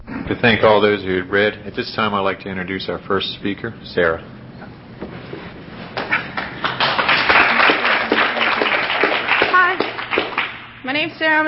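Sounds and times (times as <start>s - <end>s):
speech: 0.3s - 4.4s, 10.8s - 11.4s
audience clapping: 5.9s - 10.7s.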